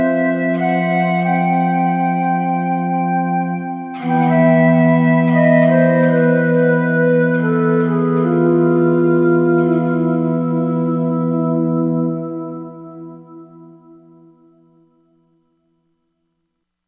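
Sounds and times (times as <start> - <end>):
Korg MSC-16S wind flute: 0.0 - 13.2.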